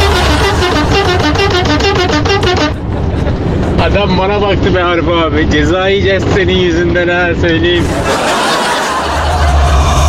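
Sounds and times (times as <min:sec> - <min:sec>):
car horn honking: 0:00.0 - 0:02.8
low engine rumble: 0:00.0 - 0:10.0
laughter: 0:02.7 - 0:03.8, 0:07.8 - 0:10.0
speech: 0:04.0 - 0:08.4.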